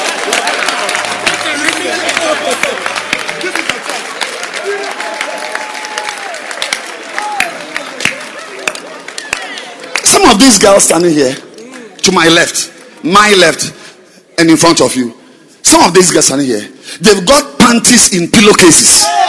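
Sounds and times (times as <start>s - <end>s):
audience clapping hands: 0.0s - 13.0s
speech: 10.3s - 11.4s, 12.0s - 13.8s, 14.4s - 19.1s.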